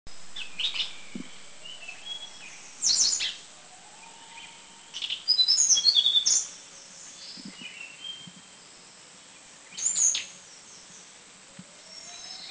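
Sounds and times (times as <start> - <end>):
hill blue flycatcher singing in northern Thailand: 0.1 - 6.9.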